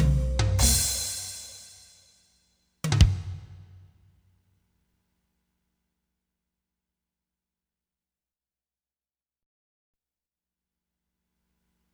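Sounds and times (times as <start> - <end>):
musical riff: 0.0 - 1.8.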